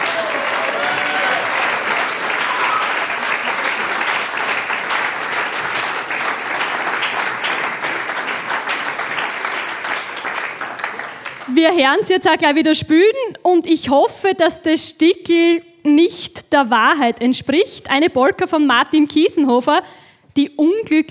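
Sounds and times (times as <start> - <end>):
faint voices and cheers: 0.0 - 4.6
audience applause: 0.0 - 11.5
speech: 11.6 - 21.0.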